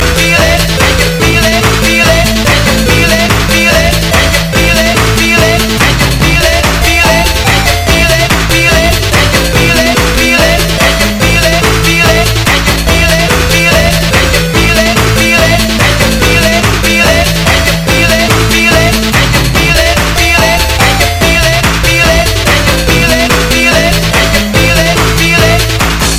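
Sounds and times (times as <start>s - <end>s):
techno game music: 0.0s - 26.1s.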